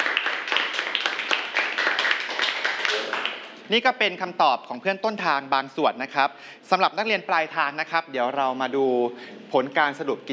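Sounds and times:
students clapping: 0:00.0 - 0:03.6
speech: 0:03.7 - 0:10.3.

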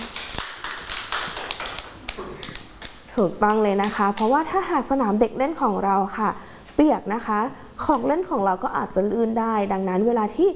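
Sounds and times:
children clapping hands: 0:00.0 - 0:04.4
speech: 0:03.2 - 0:10.5.

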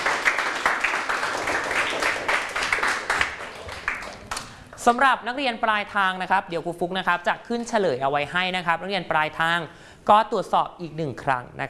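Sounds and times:
classroom students applauding: 0:00.0 - 0:04.8
speech: 0:04.8 - 0:11.6.

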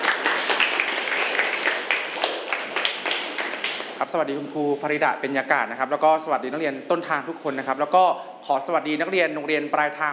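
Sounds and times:
welcoming applause: 0:00.0 - 0:04.0
speech: 0:04.1 - 0:10.1.

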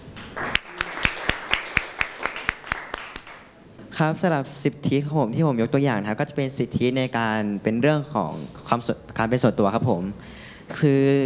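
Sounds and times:
classroom clapping for a student: 0:00.2 - 0:03.6
speech: 0:04.0 - 0:11.2.

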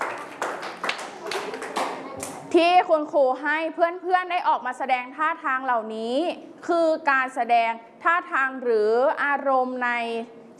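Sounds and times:
children clapping for classmates in a classroom: 0:00.0 - 0:02.5
speech: 0:02.5 - 0:10.4.

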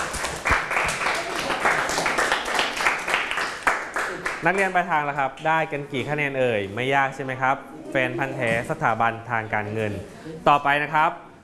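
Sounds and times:
students clapping: 0:00.0 - 0:04.8
speech: 0:04.4 - 0:11.3.

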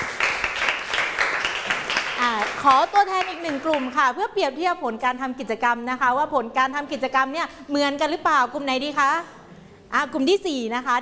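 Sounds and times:
classroom applause: 0:00.0 - 0:04.0
speech: 0:02.6 - 0:11.0.

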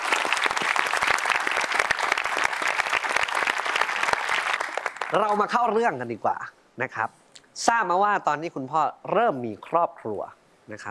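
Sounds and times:
audience applause: 0:00.0 - 0:05.4
speech: 0:05.1 - 0:10.8.

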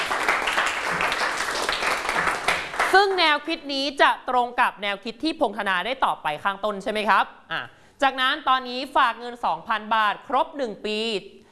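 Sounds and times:
students applauding in a mathematics classroom: 0:00.0 - 0:03.2
speech: 0:02.9 - 0:11.5.

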